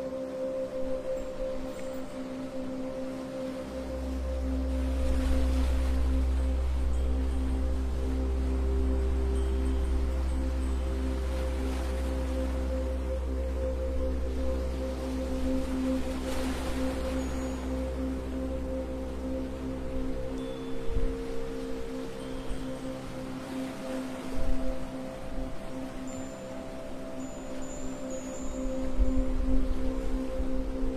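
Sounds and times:
soft swells of sea waves: 0:00.0 - 0:30.9
sustained tones ringing like a singing bowl: 0:00.0 - 0:30.9.

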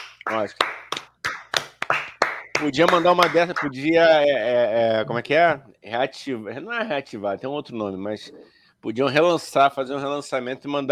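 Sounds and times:
hands clapping: 0:00.0 - 0:03.8
speech: 0:00.3 - 0:00.8, 0:02.6 - 0:10.9.

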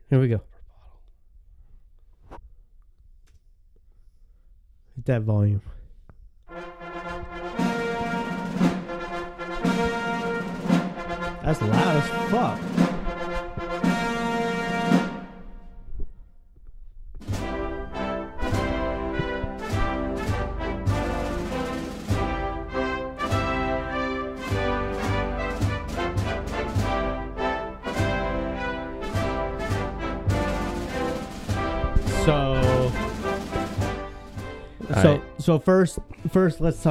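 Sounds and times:
speech: 0:00.1 - 0:00.5, 0:05.0 - 0:05.8, 0:11.5 - 0:12.8, 0:35.4 - 0:36.8
stately ceremonial march with brass and drums: 0:06.5 - 0:16.1, 0:17.2 - 0:36.8.

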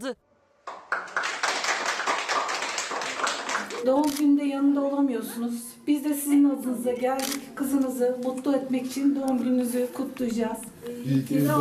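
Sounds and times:
speech: 0:00.0 - 0:00.2, 0:03.8 - 0:11.5
colleagues applauding: 0:00.6 - 0:03.9.

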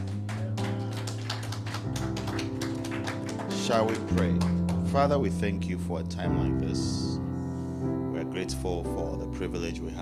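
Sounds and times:
audience clapping loudly: 0:00.0 - 0:05.3
speech: 0:03.7 - 0:07.2, 0:07.8 - 0:10.0.

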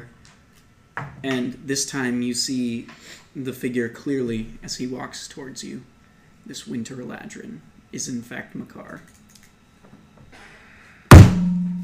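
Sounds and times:
speech: 0:01.2 - 0:09.2
table slam: 0:11.1 - 0:11.8.

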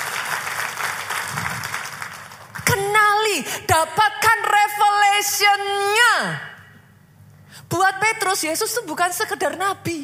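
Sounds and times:
audience clapping: 0:00.0 - 0:02.7
speech: 0:03.4 - 0:06.5, 0:07.7 - 0:10.0.

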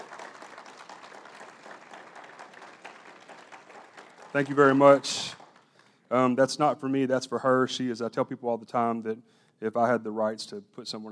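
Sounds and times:
crowd applause: 0:00.0 - 0:05.8
speech: 0:04.3 - 0:05.4, 0:06.1 - 0:11.1.

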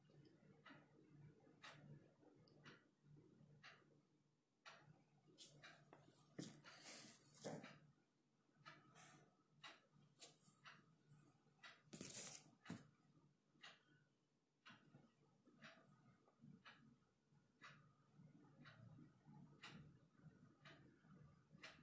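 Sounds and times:
clock ticking: 0:00.0 - 0:11.9, 0:12.6 - 0:14.0, 0:14.6 - 0:21.8
page flips: 0:12.0 - 0:12.4.

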